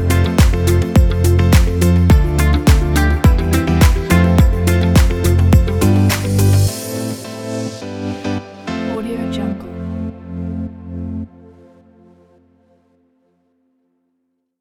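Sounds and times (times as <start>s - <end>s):
fashion pop presentation music: 0.0s - 11.2s.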